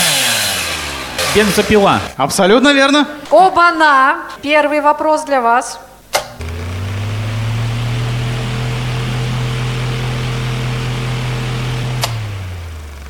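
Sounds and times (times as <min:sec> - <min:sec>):
electric fan running: 0:00.0 - 0:02.2, 0:06.1 - 0:13.0
speech: 0:01.3 - 0:05.9
electric fan switch click: 0:06.1 - 0:06.5, 0:12.0 - 0:12.2.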